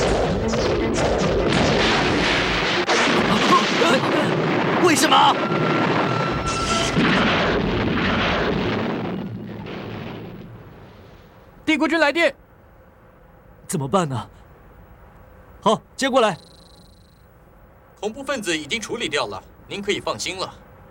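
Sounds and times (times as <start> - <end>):
warship cannon fire: 0.0 - 11.2
explosions: 0.0 - 11.4
speech: 11.8 - 12.4, 13.7 - 14.4, 15.6 - 16.5, 18.0 - 20.6.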